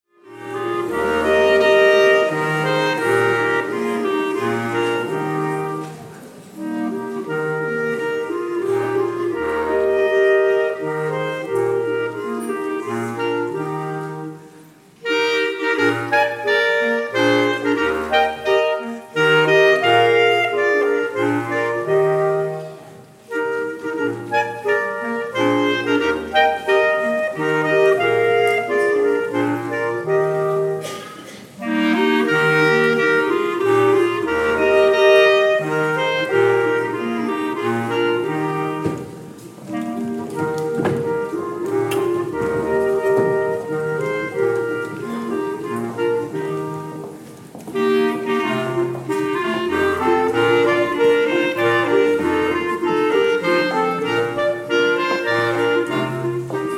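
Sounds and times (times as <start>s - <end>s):
minuet: 0.1s - 56.7s.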